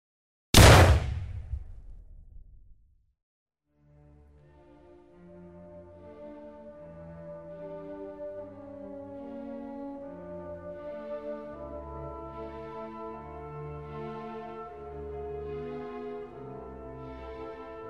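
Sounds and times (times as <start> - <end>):
revolver gunshot: 0.6 - 2.8
low sustained music: 3.9 - 17.8.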